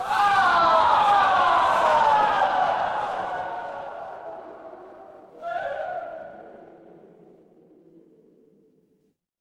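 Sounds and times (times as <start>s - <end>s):
crowd cheering: 0.0s - 6.7s.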